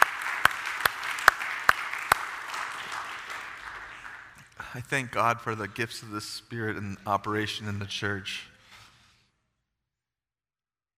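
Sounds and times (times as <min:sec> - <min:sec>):
audience hand clapping: 0:00.0 - 0:05.7
speech: 0:04.7 - 0:08.5.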